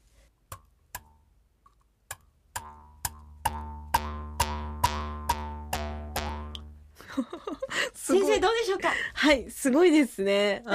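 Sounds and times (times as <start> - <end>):
Ainu mukkuri bamboo mouth harp twanging: 2.6 - 6.9
speech: 7.2 - 10.7.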